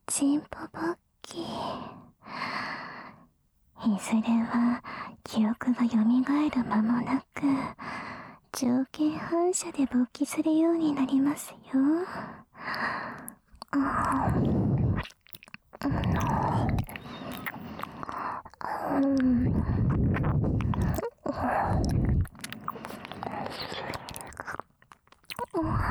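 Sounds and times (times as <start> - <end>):
speech: 0.2 - 1.9, 3.8 - 7.9, 8.5 - 14.6, 15.8 - 17.2, 18.8 - 20.5
ear licking: 13.2 - 25.7.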